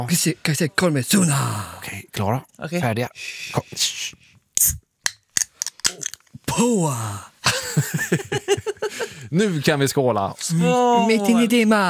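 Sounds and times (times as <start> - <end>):
speech: 0.0 - 4.8, 6.0 - 11.8
bottle of raspberry soda opening: 4.6 - 6.3
laughter: 7.4 - 9.2.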